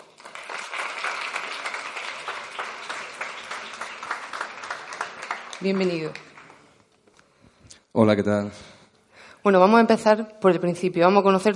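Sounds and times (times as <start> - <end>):
audience applause: 0.0 - 6.8
speech: 5.6 - 6.3, 8.0 - 8.8, 9.4 - 11.5.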